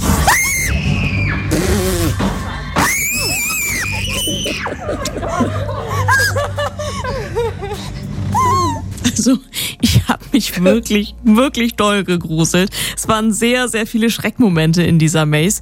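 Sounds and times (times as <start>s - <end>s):
shrill screams in the Jason Universe horror maze: 0.0s - 4.8s
snickering laughter and chuckles: 3.2s - 10.1s
speech: 9.2s - 9.5s, 10.1s - 15.5s.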